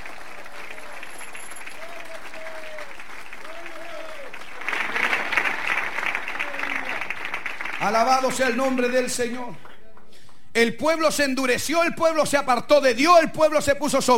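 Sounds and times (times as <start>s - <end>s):
audience clapping loudly: 0.0s - 10.4s
speech: 7.8s - 9.7s, 10.6s - 14.1s.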